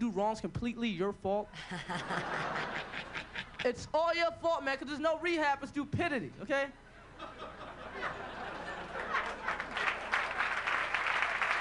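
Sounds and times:
speech: 0.2s - 7.4s
laughter: 1.5s - 3.8s, 7.1s - 10.6s
audience applause at a stand-up comedy show: 8.5s - 11.6s.

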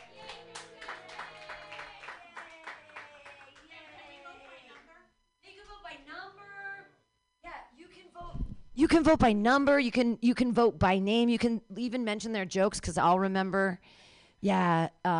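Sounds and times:
crowd clapping: 0.0s - 4.9s
cheering voices: 0.0s - 5.0s
speech: 8.8s - 15.1s.

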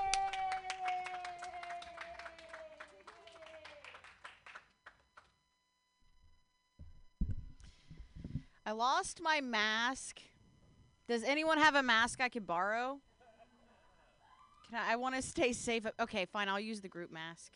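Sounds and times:
audience applause welcoming a comedian at a comedy club: 0.0s - 5.3s
speech: 8.7s - 10.3s, 11.1s - 13.1s, 14.7s - 17.5s.

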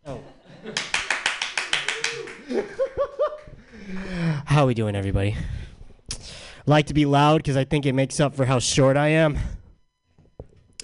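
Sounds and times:
laughter: 0.0s - 3.8s
audience clapping in a fast rhythm: 0.6s - 3.5s
speech: 4.6s - 5.6s, 6.7s - 9.6s.

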